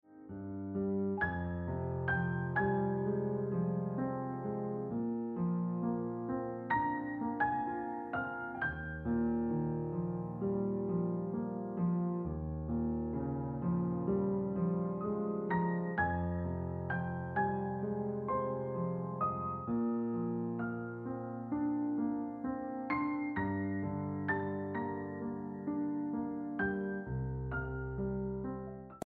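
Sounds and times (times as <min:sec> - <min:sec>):
gentle piano ringtone music: 0:00.0 - 0:29.0.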